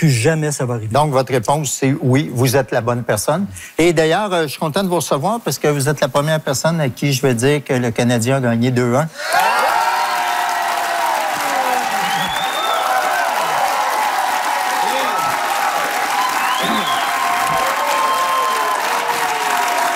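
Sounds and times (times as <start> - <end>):
speech: 0.0 - 9.8
audience applause and cheering: 9.2 - 19.9.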